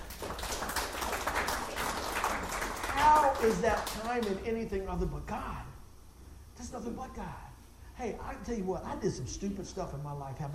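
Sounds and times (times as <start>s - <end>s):
audience hand clapping: 0.0s - 4.4s
speech: 3.4s - 5.7s, 6.6s - 10.5s.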